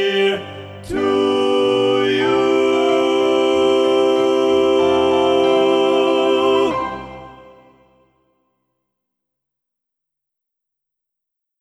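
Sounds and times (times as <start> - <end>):
TTB choir singing a sea shanty: 0.0 - 8.0.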